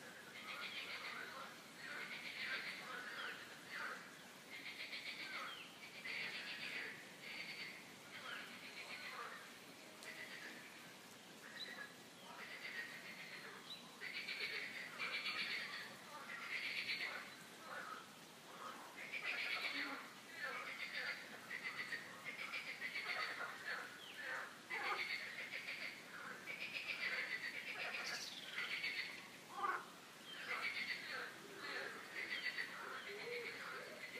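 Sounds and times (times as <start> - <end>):
chorus of frogs croaking: 0.0 - 10.8, 11.4 - 34.1.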